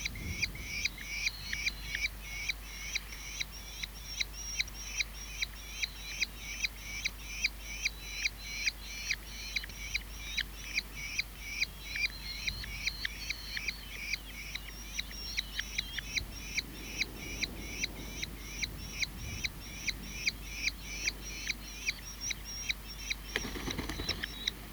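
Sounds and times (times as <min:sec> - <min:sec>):
birdsong: 0:00.0 - 0:24.6.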